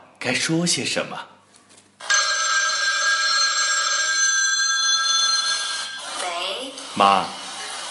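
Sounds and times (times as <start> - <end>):
speech: 0.2 - 1.3, 7.0 - 7.4
telephone bell ringing: 2.0 - 6.2.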